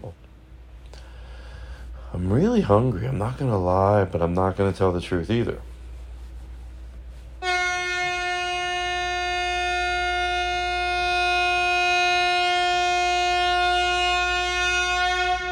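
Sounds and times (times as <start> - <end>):
speech: 2.2 - 5.7
loud horn honk: 7.4 - 15.5.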